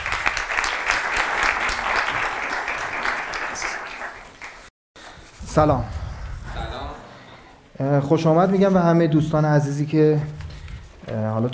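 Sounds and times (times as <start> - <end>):
audience applause: 0.0 - 4.7
speech: 5.6 - 6.0, 7.8 - 10.4, 11.1 - 11.5.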